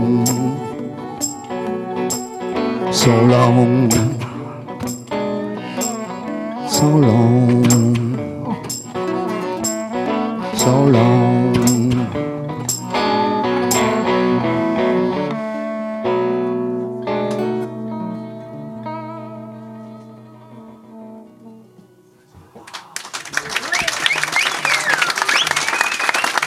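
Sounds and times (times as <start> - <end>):
live blues band's last sustained chords: 0.0 - 22.2
speech: 3.0 - 4.3, 6.8 - 8.4, 10.6 - 12.3
crowd applause after a live blues band song: 22.6 - 26.4.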